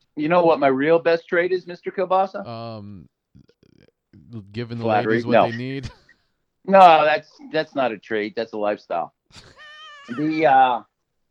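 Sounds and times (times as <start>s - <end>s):
speech: 0.2s - 3.5s, 4.2s - 6.0s, 6.6s - 10.9s
cat meowing: 9.4s - 10.4s.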